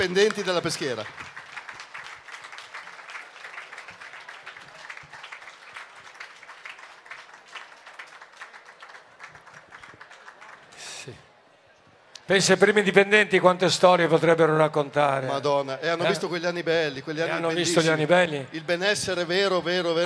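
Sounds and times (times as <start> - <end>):
speech: 0.0 - 1.3, 12.3 - 20.0
crowd applauding: 0.0 - 11.4.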